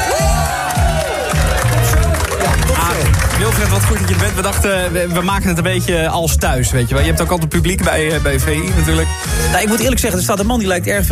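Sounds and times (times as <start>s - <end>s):
pub crowd applauding and cheering: 0.0s - 5.4s
thumping music beat: 0.0s - 11.1s
speech: 3.7s - 11.1s.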